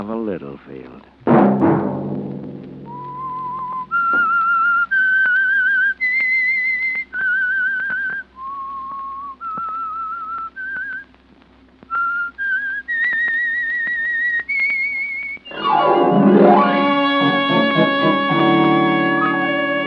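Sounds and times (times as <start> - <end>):
speech: 0.0 - 2.3
faint low hum: 0.0 - 19.8
thump: 1.3 - 3.0, 3.9 - 4.4
whistled radio show theme melody: 2.9 - 7.6, 14.5 - 19.8.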